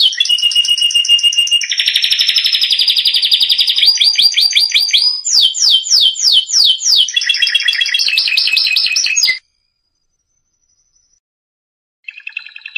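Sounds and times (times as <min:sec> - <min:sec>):
canary song: 0:00.0 - 0:11.2, 0:12.0 - 0:12.7.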